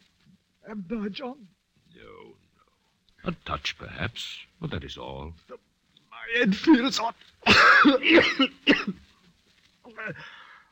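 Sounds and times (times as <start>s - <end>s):
speech: 0.7s - 2.4s, 3.2s - 9.0s, 9.9s - 10.4s
coughing: 7.4s - 9.1s.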